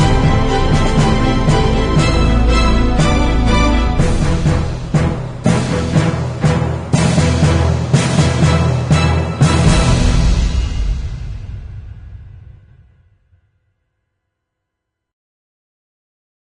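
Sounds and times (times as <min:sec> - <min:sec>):
orchestral trailer music: 0:00.0 - 0:13.0.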